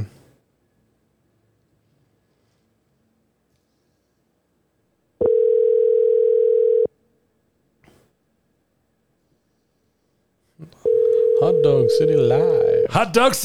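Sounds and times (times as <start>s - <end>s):
telephone dial tone on an outgoing call: 5.2s - 6.9s, 10.8s - 13.0s
speech: 11.6s - 13.4s.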